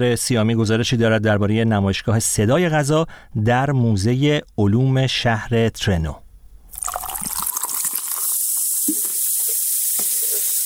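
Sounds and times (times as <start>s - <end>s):
speech: 0.0s - 6.2s
fizzy soda drink opened and poured: 6.7s - 10.6s.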